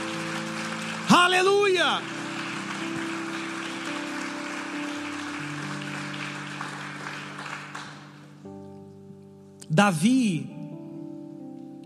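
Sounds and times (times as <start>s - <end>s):
audience applauding: 0.0s - 8.4s
speech: 1.3s - 2.2s, 9.8s - 10.5s.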